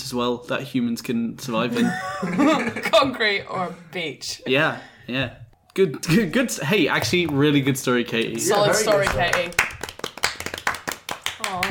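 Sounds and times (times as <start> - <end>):
speech: 0.1 - 9.7
laughter: 1.7 - 3.1
quick sharp hand claps: 8.1 - 11.6.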